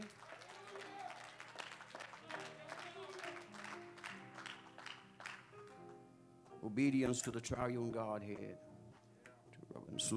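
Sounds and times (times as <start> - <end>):
audience applause: 0.0 - 5.5
speech: 6.6 - 8.7.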